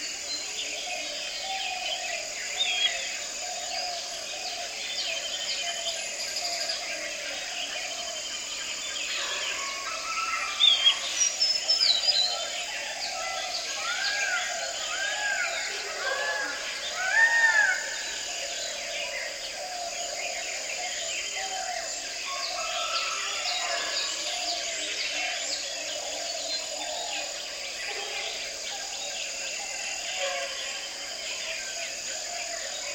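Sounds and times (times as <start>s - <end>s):
orioles calling: 0.0s - 32.9s.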